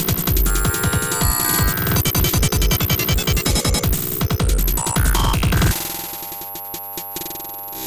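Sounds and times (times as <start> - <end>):
electric beam: 0.0 - 6.1.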